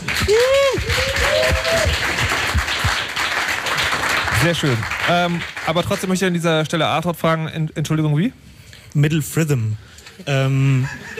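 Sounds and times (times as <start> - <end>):
audience applause: 0.0 - 6.2
speech: 4.4 - 11.1.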